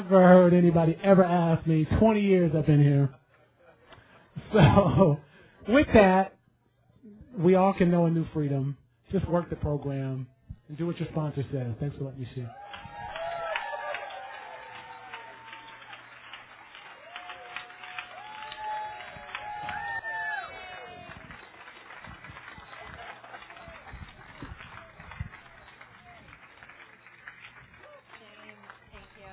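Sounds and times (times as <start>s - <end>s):
speech: 0.1s - 3.2s, 4.4s - 6.4s, 7.0s - 12.9s
audience applause: 12.5s - 29.3s.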